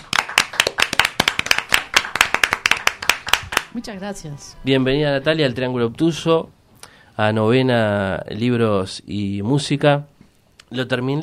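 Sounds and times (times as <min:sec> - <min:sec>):
small audience applause: 0:00.0 - 0:03.8
speech: 0:03.7 - 0:06.6, 0:07.2 - 0:10.1, 0:10.7 - 0:11.2.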